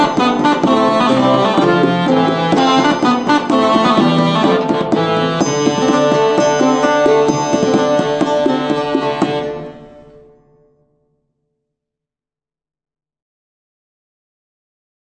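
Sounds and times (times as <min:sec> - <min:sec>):
cornamusa bagpipe: 0:00.0 - 0:10.3
lute: 0:00.0 - 0:10.8.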